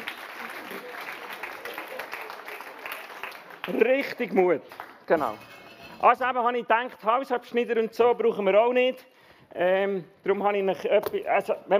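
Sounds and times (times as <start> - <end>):
audience applause: 0.0 - 5.1
speech: 3.7 - 11.7.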